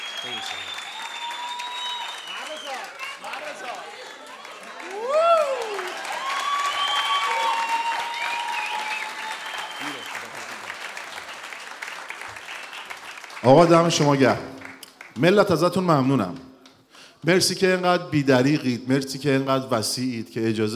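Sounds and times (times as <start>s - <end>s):
concert audience cheering: 0.0s - 13.0s
concert audience clapping: 0.0s - 17.4s
speech: 0.2s - 0.9s, 2.6s - 5.3s, 13.4s - 14.5s, 15.2s - 16.5s, 17.2s - 20.7s.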